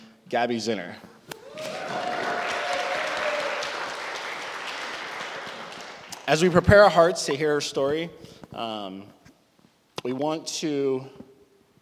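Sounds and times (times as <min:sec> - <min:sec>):
speech: 0:00.3 - 0:01.7, 0:06.3 - 0:09.2, 0:10.0 - 0:11.3
church congregation applauding at a morning service: 0:01.4 - 0:07.1.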